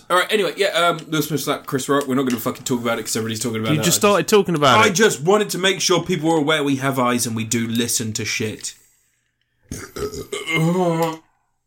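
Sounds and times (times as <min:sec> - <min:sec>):
speech: 0:00.1 - 0:08.8, 0:09.7 - 0:11.2
burp: 0:09.6 - 0:11.3.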